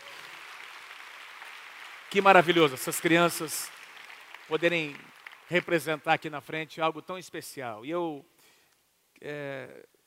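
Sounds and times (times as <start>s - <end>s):
audience applauding: 0.0s - 6.4s
speech: 2.1s - 3.8s, 4.5s - 8.3s, 9.2s - 10.0s.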